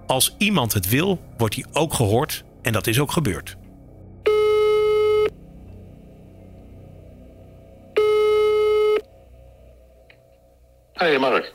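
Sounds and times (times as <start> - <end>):
low rumble: 0.0 - 11.5
speech: 0.1 - 3.6, 11.0 - 11.5
ringback tones of an outgoing phone call: 4.3 - 5.3, 8.0 - 9.0.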